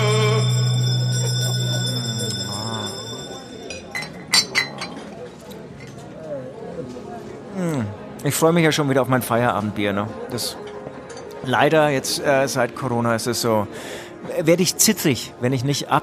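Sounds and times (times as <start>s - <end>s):
bell ringing: 0.0s - 4.3s
sharp clinks: 0.0s - 4.8s
faint voices: 0.0s - 12.9s
speech: 8.2s - 10.6s, 11.4s - 16.0s.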